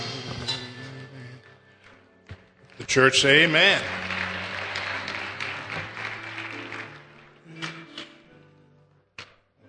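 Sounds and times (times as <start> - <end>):
audience applauding: 2.6 - 7.5
speech: 2.9 - 4.0.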